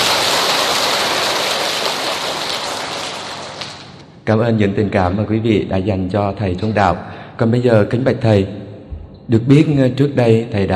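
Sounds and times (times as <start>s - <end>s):
crowd applauding enthusiastically: 0.0s - 4.0s
speech: 4.3s - 8.6s, 9.3s - 10.7s.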